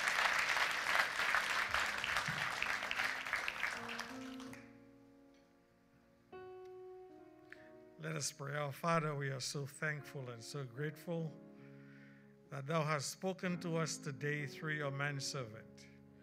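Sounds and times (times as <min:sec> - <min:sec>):
audience hand clapping: 0:00.0 - 0:04.7
speech: 0:08.0 - 0:11.4, 0:12.5 - 0:15.9.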